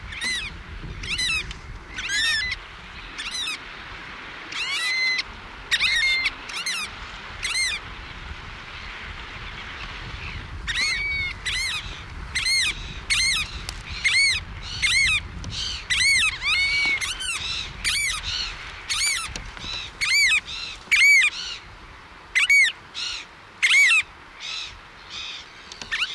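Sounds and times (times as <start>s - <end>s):
variable oystercatcher calling with harsh piping notes: 0.1s - 2.6s, 4.5s - 7.8s, 10.3s - 21.6s, 22.4s - 26.1s.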